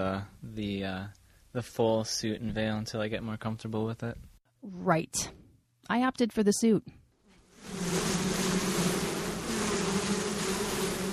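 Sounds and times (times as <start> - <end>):
speech: 0.0 - 7.0
honeybees buzzing around an open hive: 7.5 - 11.1.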